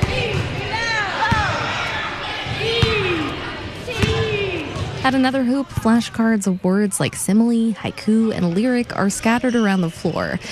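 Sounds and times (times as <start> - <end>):
about 80 children's voices calling and shouting: 0.0 - 4.8
basketballs bouncing on a school gym floor: 0.0 - 6.3
speech: 5.1 - 10.5.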